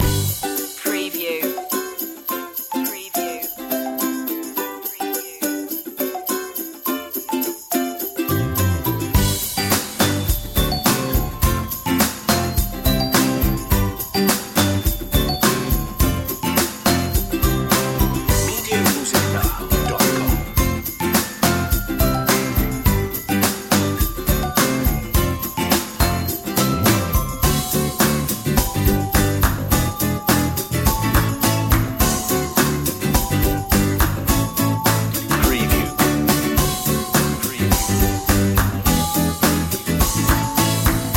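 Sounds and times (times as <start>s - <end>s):
easy fun music loop: 0.0s - 41.1s.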